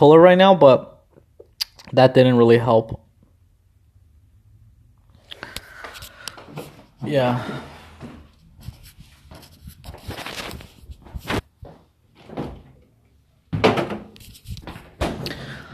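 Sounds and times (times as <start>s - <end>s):
speech: 0.0s - 0.9s, 1.9s - 3.0s, 7.0s - 7.7s
fridge door shutting with a thud: 13.5s - 14.2s, 14.8s - 15.4s.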